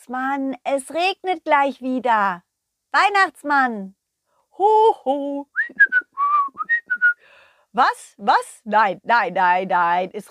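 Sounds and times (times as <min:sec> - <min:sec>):
speech: 0:00.0 - 0:04.0, 0:04.6 - 0:05.8, 0:07.7 - 0:10.2
cheerful whistling while hanging laundry: 0:05.5 - 0:07.2.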